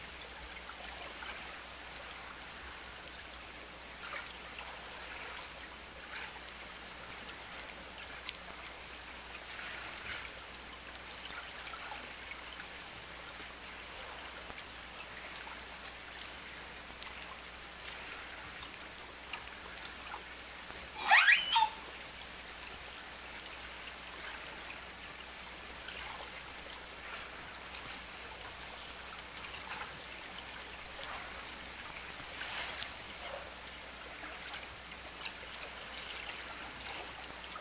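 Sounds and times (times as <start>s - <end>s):
waves: 0.0s - 37.6s
orca S2 calls: 21.0s - 21.8s.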